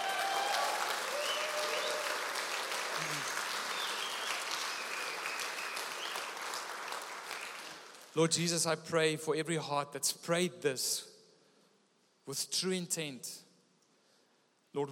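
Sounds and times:
audience cheering: 0.0s - 7.8s
speech: 8.2s - 11.1s, 12.3s - 13.4s, 14.8s - 14.9s.

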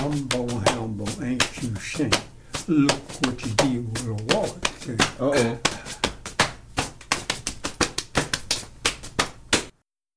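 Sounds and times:
modern body percussion: 0.0s - 9.8s
speech: 2.0s - 3.5s.

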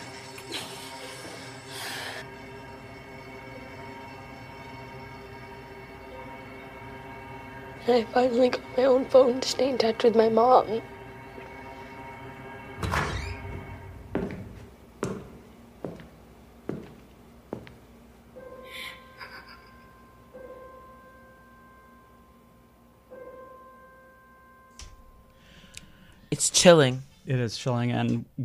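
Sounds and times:
speech: 7.9s - 10.9s, 26.6s - 28.4s
gunman's footsteps approaching: 13.5s - 17.9s.

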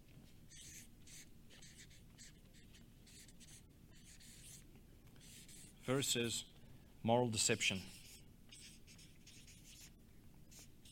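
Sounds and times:
steady low hum: 0.0s - 10.8s
handwriting strokes: 0.5s - 4.6s, 5.2s - 5.8s, 7.5s - 10.8s
speech: 5.9s - 8.0s.

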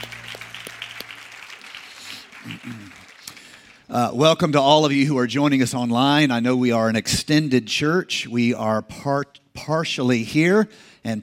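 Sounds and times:
church congregation applauding the mothers during a service: 0.0s - 4.1s
speech: 2.6s - 3.0s, 3.9s - 11.2s.

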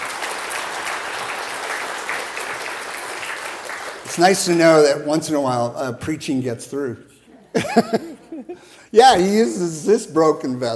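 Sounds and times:
audience applause: 0.0s - 4.5s
speech: 4.2s - 10.7s
laughter: 7.5s - 8.8s.

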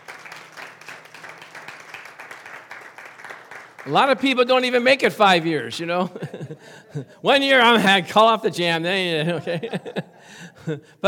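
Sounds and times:
audience clapping hands: 0.0s - 4.9s
speech: 3.8s - 11.0s
laughter: 6.0s - 7.1s, 9.2s - 10.8s.

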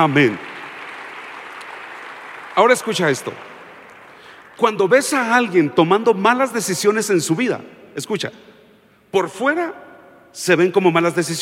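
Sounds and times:
speech: 0.0s - 0.5s, 2.6s - 3.5s, 4.6s - 8.5s, 9.1s - 11.4s
audience applause: 0.0s - 4.8s.

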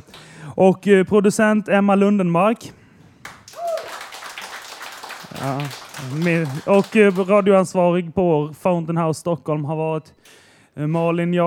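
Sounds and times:
speech: 0.5s - 2.8s, 5.4s - 11.4s
applause for the technician: 3.2s - 7.6s.

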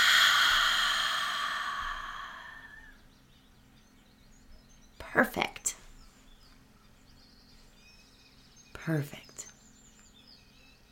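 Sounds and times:
deep breath exhaled during a guided meditation: 0.0s - 3.0s
speech: 5.2s - 5.8s, 8.8s - 9.3s.

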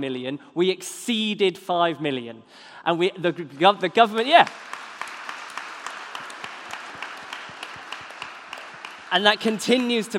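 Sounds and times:
speech: 0.0s - 4.8s, 9.1s - 10.1s
audience clapping: 3.5s - 10.1s.

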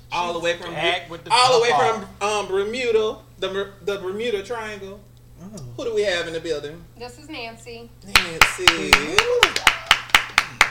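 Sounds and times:
speech: 0.1s - 9.6s
voice making wavering wordless sounds: 1.3s - 2.2s
hands clapping: 8.1s - 10.6s.

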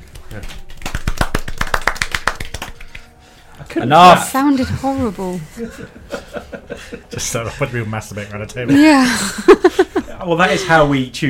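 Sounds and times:
applause: 0.2s - 3.1s
speech: 0.4s - 0.6s, 3.7s - 11.2s
laughter: 5.6s - 8.2s, 8.8s - 10.8s.

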